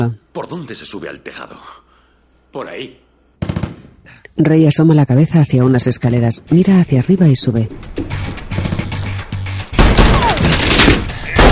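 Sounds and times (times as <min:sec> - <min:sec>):
speech: 0:00.0 - 0:01.9, 0:02.5 - 0:08.8
gunfire in an action film scene around a bus: 0:03.4 - 0:04.0, 0:09.8 - 0:11.5
crashing: 0:09.8 - 0:11.5.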